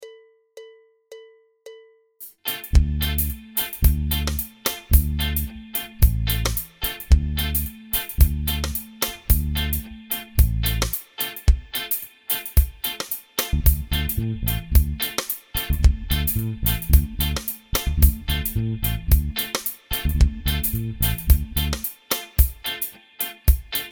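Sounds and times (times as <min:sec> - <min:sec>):
improvisation in D minor seventh: 0:02.2 - 0:23.9.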